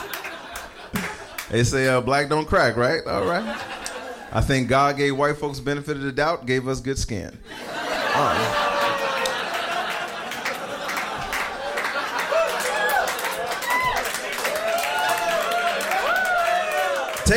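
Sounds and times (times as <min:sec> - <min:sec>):
audience laughter: 0:00.0 - 0:01.5, 0:03.2 - 0:04.4, 0:07.5 - 0:14.6
audience clapping: 0:00.0 - 0:02.0, 0:08.2 - 0:17.3
speech: 0:01.5 - 0:07.6, 0:08.2 - 0:08.6
audience cheering and whooping: 0:07.7 - 0:17.3.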